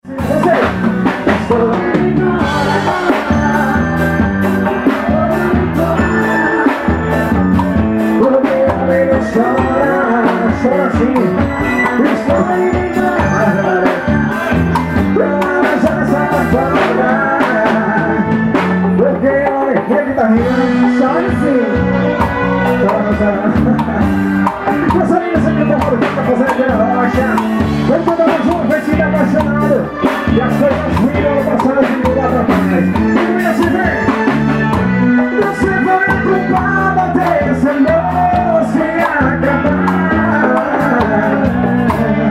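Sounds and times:
live forró music: 0.0s - 42.3s.

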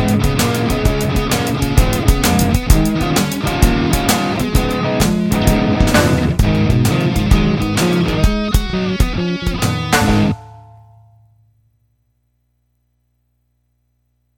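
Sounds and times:
hard shuffle rhythm: 0.0s - 10.4s.

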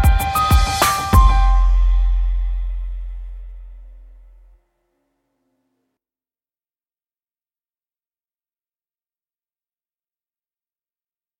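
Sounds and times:
rap music: 0.0s - 3.8s.

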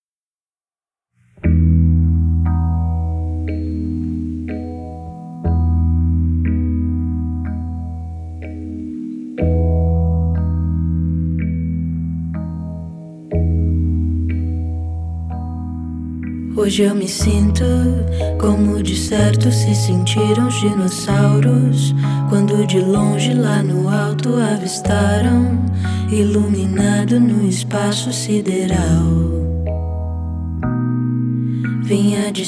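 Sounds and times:
acoustic music: 1.3s - 32.4s.

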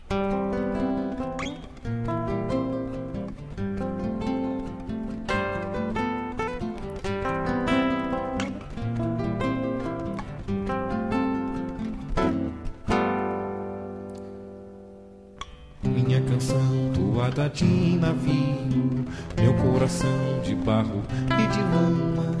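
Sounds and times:
toada folk song: 0.1s - 22.3s.

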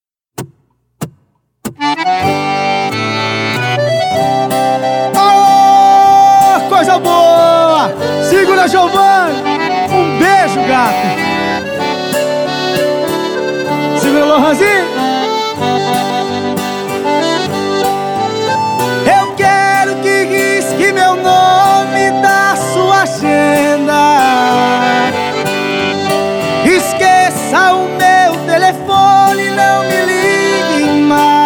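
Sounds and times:
modão Brazilian country music: 1.6s - 31.4s.

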